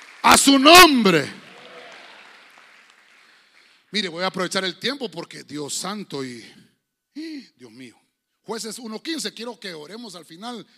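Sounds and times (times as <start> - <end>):
audience clapping: 0.0 - 4.3
speech: 0.4 - 1.4, 3.9 - 10.7.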